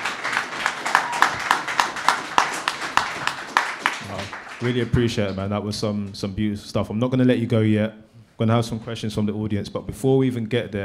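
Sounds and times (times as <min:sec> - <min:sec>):
audience applause for a guest: 0:00.0 - 0:05.4
speech: 0:04.6 - 0:10.8.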